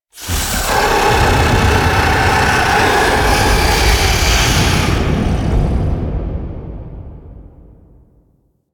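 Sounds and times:
octopede death: 0.2s - 5.9s.

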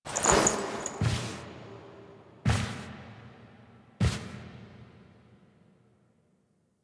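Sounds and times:
foley sounds: 0.1s - 1.2s.

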